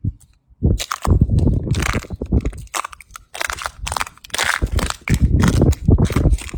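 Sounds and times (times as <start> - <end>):
stepping on clam shells on beach: 0.8 - 6.5.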